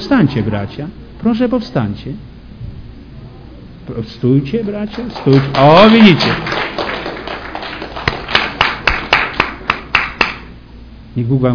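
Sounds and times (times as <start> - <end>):
speech: 0.0 - 2.3, 3.9 - 7.0, 11.2 - 11.5
rhythmic audience claps in unison: 4.6 - 10.6
audience applause: 4.7 - 10.5.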